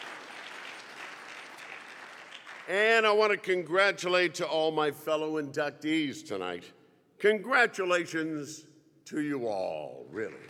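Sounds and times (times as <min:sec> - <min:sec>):
faint audience applause at an induction dinner: 0:00.0 - 0:02.8, 0:10.1 - 0:10.4
speech: 0:02.7 - 0:10.4.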